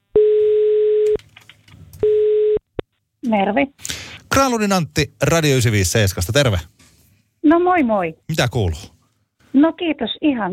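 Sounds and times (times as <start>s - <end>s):
telephone ringback tone while placing a call: 0.2s - 1.1s, 2.0s - 2.6s
speech: 3.3s - 6.7s, 7.4s - 8.9s, 9.5s - 10.5s.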